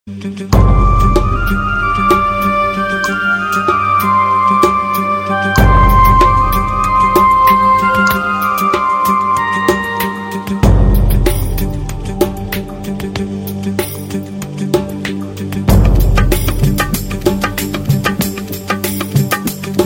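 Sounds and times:
taal music: 0:00.5 - 0:19.8.

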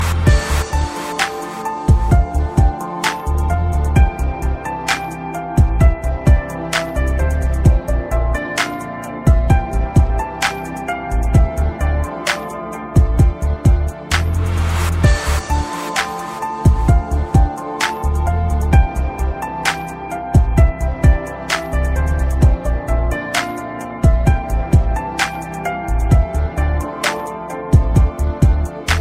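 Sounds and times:
piano: 0:00.0 - 0:29.0.

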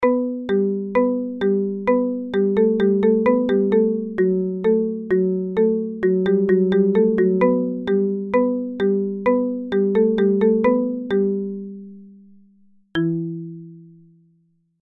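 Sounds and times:
marimba: 0:00.0 - 0:14.3.

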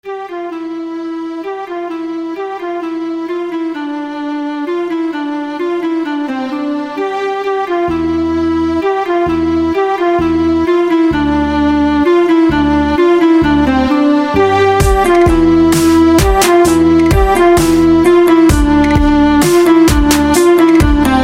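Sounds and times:
clarinet: 0:00.0 - 0:21.2.

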